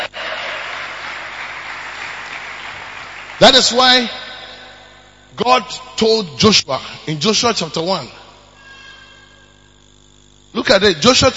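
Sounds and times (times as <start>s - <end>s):
people clapping: 0.0s - 4.9s
speech: 3.4s - 4.2s, 5.4s - 8.2s, 10.6s - 11.3s.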